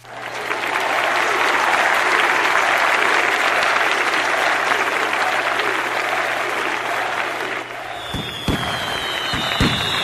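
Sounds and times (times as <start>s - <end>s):
crowd applause and cheering in game: 0.0s - 10.0s
high whistling tone: 7.9s - 10.0s
firework-like pops: 8.1s - 10.0s.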